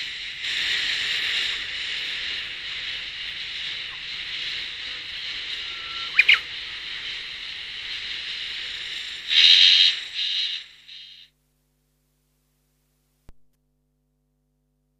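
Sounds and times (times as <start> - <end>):
insect producing high-pitched buzzing drone: 0.0 - 11.3.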